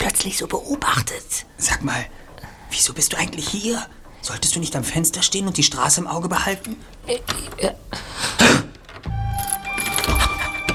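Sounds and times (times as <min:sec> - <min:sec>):
speech: 0:00.2 - 0:08.4
front door creaking open: 0:08.8 - 0:10.7
keys jingling at a front door: 0:09.2 - 0:10.7.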